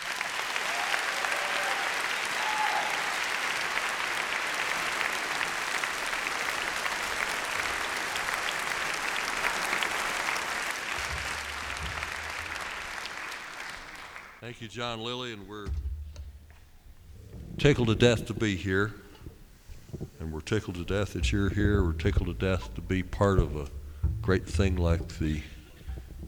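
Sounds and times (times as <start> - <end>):
audience applause at the Augusta Festival welcoming a songwriter: 0.0 - 14.8
speech: 14.5 - 15.8, 17.6 - 19.0, 20.5 - 25.5.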